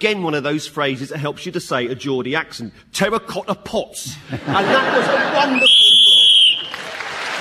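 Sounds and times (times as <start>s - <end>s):
speech: 0.0s - 5.7s
laughter: 4.1s - 5.8s
game show whistle blown at round end: 5.6s - 6.8s.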